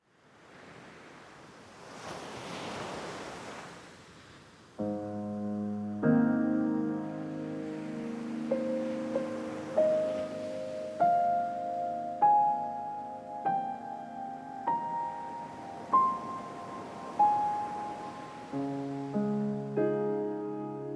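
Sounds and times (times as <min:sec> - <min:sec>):
ocean waves: 0:00.0 - 0:04.9, 0:06.1 - 0:20.9
serene piano: 0:04.8 - 0:20.9.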